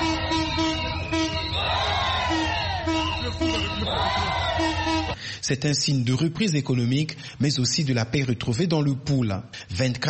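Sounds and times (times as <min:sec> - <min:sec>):
market vendors cheering and whooping at train's arrival: 0:00.0 - 0:05.2
ululating voices: 0:00.0 - 0:05.2
speech: 0:05.4 - 0:10.0.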